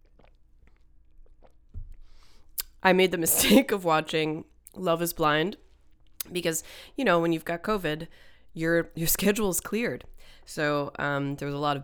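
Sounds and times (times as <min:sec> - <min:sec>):
person sipping and swallowing lemon water: 0:00.0 - 0:02.8
speech: 0:02.8 - 0:05.6, 0:06.3 - 0:11.8.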